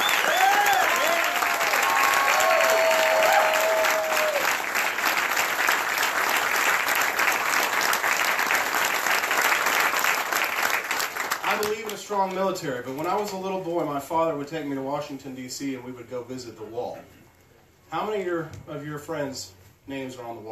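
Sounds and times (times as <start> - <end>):
audience applause: 0.0 - 12.0
speech: 12.2 - 17.2, 17.9 - 20.4.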